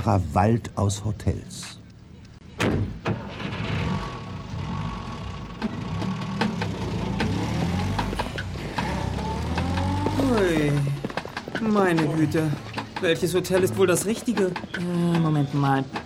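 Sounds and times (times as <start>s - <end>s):
speech: 0.0s - 1.8s, 11.7s - 16.0s
taxi engine rumbling at a low pitch: 3.2s - 14.2s.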